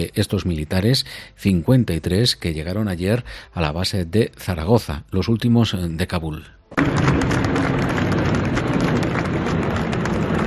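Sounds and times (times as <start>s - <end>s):
speech: 0.0s - 8.3s
applause from waiting family members: 6.8s - 10.4s.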